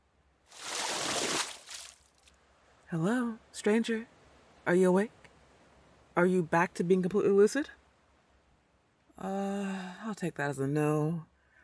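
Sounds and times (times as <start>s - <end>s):
water thrown onto a face: 0.5s - 2.1s
speech: 2.9s - 4.1s, 4.7s - 5.2s, 6.2s - 7.8s, 9.2s - 11.3s.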